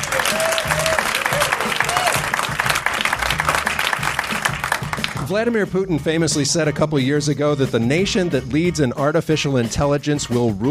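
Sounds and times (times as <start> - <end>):
audience applause at the Chicago Council on Global Affairs: 0.0 - 5.3
speech: 5.3 - 10.6.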